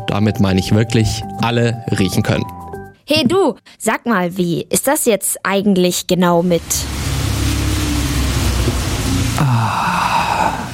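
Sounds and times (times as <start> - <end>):
speech: 0.1 - 7.0
rain falling: 6.5 - 10.7.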